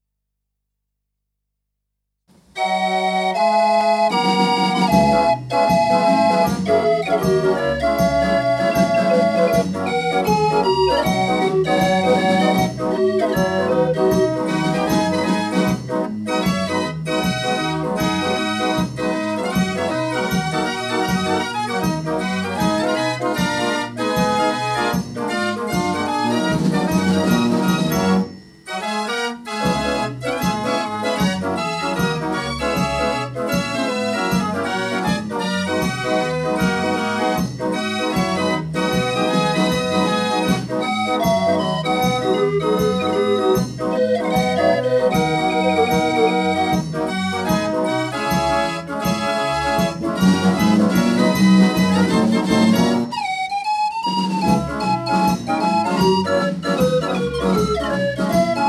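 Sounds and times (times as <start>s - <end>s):
Dutch street barrel organ playing: 2.6s - 58.6s.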